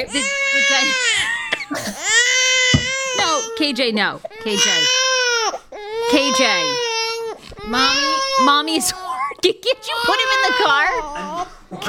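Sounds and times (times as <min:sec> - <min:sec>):
speech: 0:00.0 - 0:02.4, 0:03.6 - 0:05.1, 0:06.1 - 0:06.9, 0:07.6 - 0:11.8
infant crying: 0:00.0 - 0:11.8.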